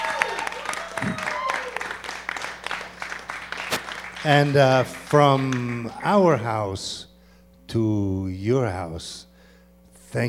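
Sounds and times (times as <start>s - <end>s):
audience applause: 0.0s - 6.0s
scattered voices and whoops: 0.0s - 6.4s
speech: 4.2s - 7.1s, 7.7s - 9.3s.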